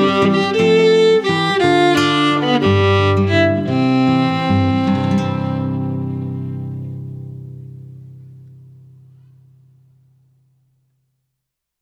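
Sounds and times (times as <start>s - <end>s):
waltz music: 0.0s - 6.8s.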